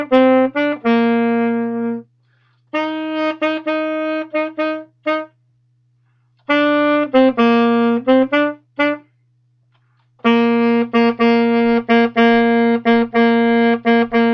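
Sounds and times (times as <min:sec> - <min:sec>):
saxophone: 0:00.0 - 0:05.4, 0:06.4 - 0:09.2, 0:09.8 - 0:14.3.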